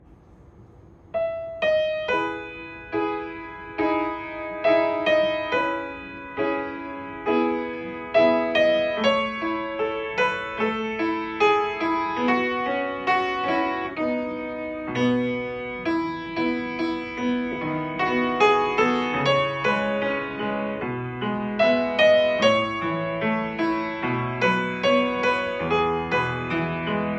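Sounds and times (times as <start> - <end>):
solo piano piece: 0.0 - 27.1.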